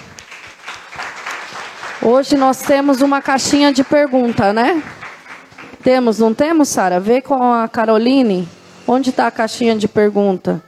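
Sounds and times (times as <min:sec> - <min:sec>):
steady applause from a group: 0:00.0 - 0:06.1
speech: 0:02.0 - 0:05.0, 0:05.8 - 0:10.6.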